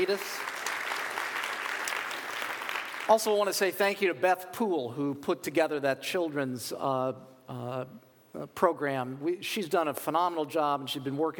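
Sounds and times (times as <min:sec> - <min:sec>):
speech: 0:00.0 - 0:00.5, 0:03.1 - 0:11.3
audience round of applause: 0:00.0 - 0:03.2.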